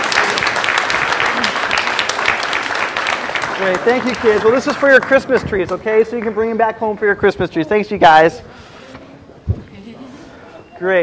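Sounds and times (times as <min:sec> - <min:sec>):
crowd clapping for kids: 0:00.0 - 0:07.1
speech: 0:03.6 - 0:08.6, 0:10.8 - 0:11.0.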